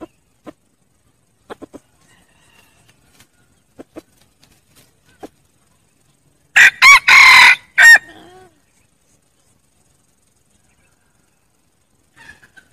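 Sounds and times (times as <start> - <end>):
red junglefowl clucking: 1.4 - 4.3, 5.0 - 5.5, 12.1 - 12.7
red junglefowl crowing: 2.0 - 3.0, 6.6 - 8.5.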